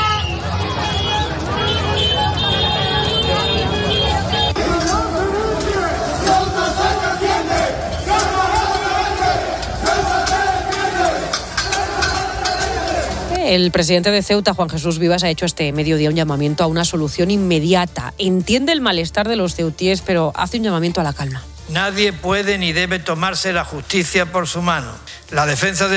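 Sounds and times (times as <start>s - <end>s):
crowd of protesting residents shouting: 0.0s - 13.4s
speech: 13.5s - 25.9s.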